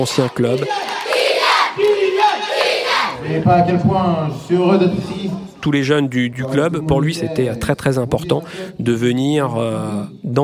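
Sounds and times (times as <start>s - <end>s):
speech: 0.0s - 0.9s, 3.2s - 10.4s
enthusiastic crowd cheering and chanting: 0.0s - 5.6s.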